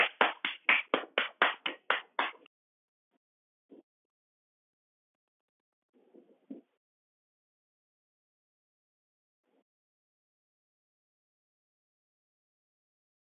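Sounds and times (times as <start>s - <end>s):
applause: 0.0s - 2.4s.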